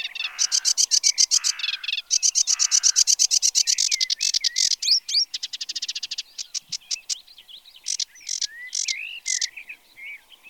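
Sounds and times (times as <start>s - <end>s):
sedge warbler song: 0.0s - 10.4s.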